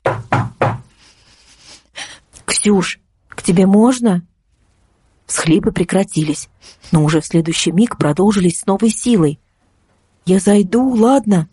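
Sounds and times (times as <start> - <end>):
careful knocking on a door: 0.0 - 0.9
speech: 2.6 - 4.3, 5.3 - 9.4, 10.2 - 11.5.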